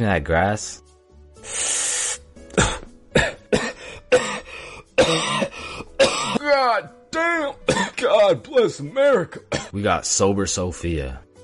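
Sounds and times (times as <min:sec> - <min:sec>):
speech: 0:00.0 - 0:00.8, 0:01.4 - 0:01.8, 0:06.5 - 0:11.3
coughing: 0:02.5 - 0:06.6, 0:07.6 - 0:08.1, 0:09.1 - 0:09.8.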